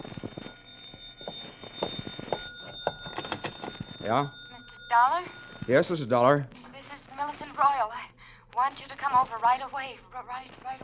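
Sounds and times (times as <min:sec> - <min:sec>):
telephone ringing: 0:00.0 - 0:06.2
speech: 0:04.0 - 0:10.8.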